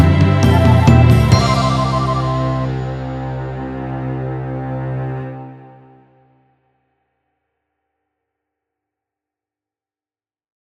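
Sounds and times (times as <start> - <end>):
orchestral piano: 0.0 - 6.3.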